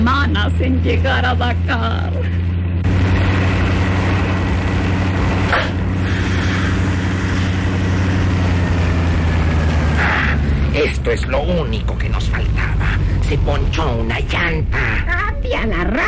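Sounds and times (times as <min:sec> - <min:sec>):
speech: 0:00.0 - 0:02.5, 0:10.8 - 0:12.7, 0:13.3 - 0:16.0
old rundown vehicle engine running at full speed: 0:00.0 - 0:16.0.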